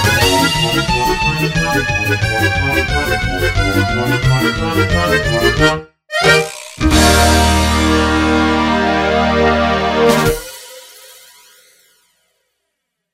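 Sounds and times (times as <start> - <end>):
accordion: 0.0 - 10.5.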